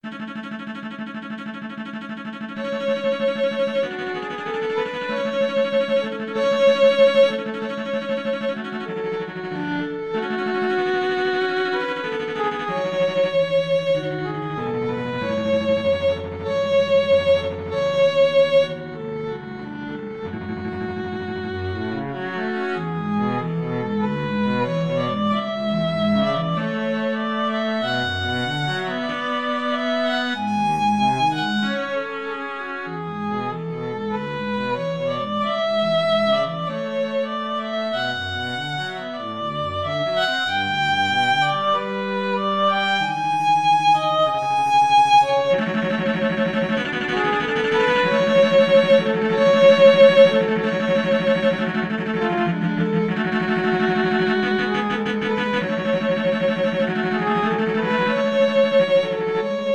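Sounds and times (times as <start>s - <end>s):
violin and cello duet: 0.0s - 59.7s.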